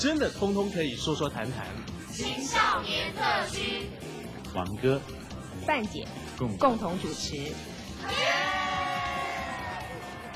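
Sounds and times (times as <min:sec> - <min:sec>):
speech: 0:00.0 - 0:08.4
studio audience cheering at the opening of a youth talk show: 0:08.1 - 0:10.3.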